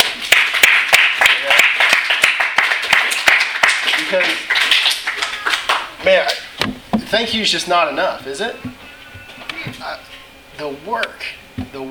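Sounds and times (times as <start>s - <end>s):
audience applause: 0.0s - 6.0s
speech: 7.1s - 8.8s, 10.6s - 11.9s.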